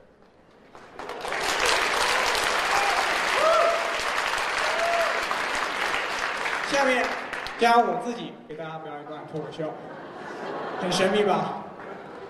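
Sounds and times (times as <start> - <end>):
audience applause: 0.4 - 7.9
speech: 6.8 - 11.6
laughter: 9.6 - 12.2.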